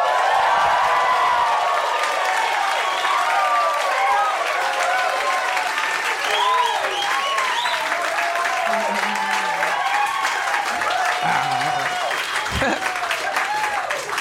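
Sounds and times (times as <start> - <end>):
live audience of about two hundred clapping at the Hollywood Improv comedy club: 0.0 - 14.1
laughter: 8.3 - 13.5.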